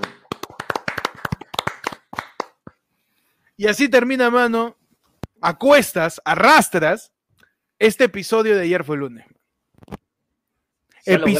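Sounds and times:
hands clapping: 0.0s - 2.9s
speech: 3.6s - 4.8s, 5.4s - 7.1s, 7.8s - 9.4s, 11.1s - 11.3s.

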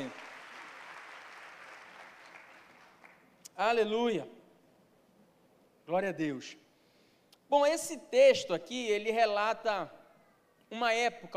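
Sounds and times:
audience applauding: 0.0s - 3.3s
speech: 3.6s - 4.4s, 5.9s - 6.6s, 7.5s - 10.0s, 10.7s - 11.3s.

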